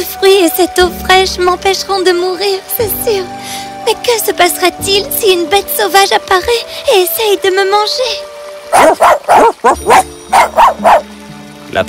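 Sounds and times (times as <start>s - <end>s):
speech: 0.0s - 11.1s
small dog barking: 8.7s - 11.1s.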